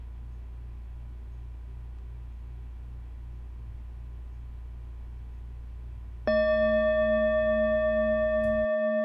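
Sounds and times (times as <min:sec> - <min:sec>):
low hum: 0:00.0 - 0:08.9
meditation bell ringing: 0:06.3 - 0:08.8.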